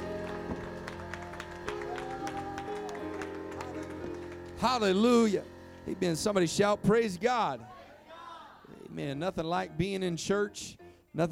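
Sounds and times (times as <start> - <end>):
audience hand clapping: 0.0 - 5.1
speech: 4.6 - 7.7, 9.0 - 11.3.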